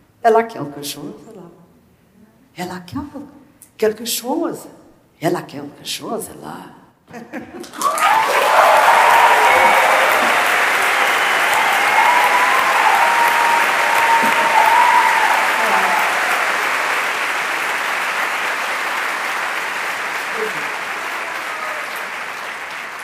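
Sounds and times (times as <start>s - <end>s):
speech: 0.2s - 1.6s, 2.6s - 8.6s
laughter: 7.1s - 8.1s
large crowd applauding: 7.6s - 23.0s.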